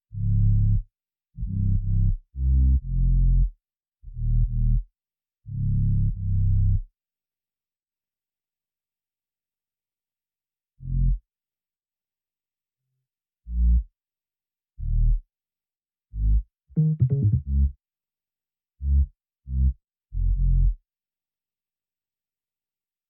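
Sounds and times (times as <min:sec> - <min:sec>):
bass: 0:00.1 - 0:06.9, 0:10.8 - 0:11.2, 0:13.5 - 0:13.9, 0:14.8 - 0:15.2, 0:16.1 - 0:17.8, 0:18.8 - 0:20.8.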